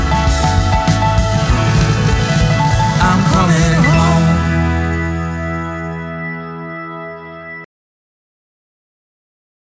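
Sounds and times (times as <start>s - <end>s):
piano: 0.0s - 7.7s.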